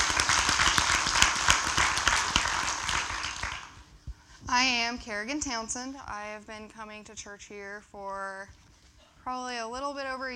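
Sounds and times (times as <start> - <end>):
crowd applause: 0.0 - 3.8
speech: 4.6 - 8.6, 9.2 - 10.3.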